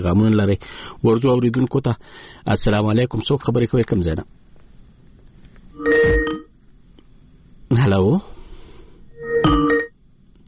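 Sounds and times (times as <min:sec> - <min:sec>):
speech: 0:00.0 - 0:04.4, 0:05.8 - 0:06.4, 0:07.7 - 0:08.3
hiss: 0:00.0 - 0:10.4
telephone line tone as a caller's connection drops: 0:05.8 - 0:06.5, 0:09.2 - 0:10.0.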